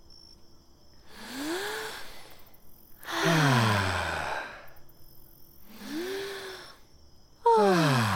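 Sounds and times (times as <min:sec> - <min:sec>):
several voices taking deep breaths in unison: 0:01.0 - 0:04.9, 0:05.6 - 0:08.1.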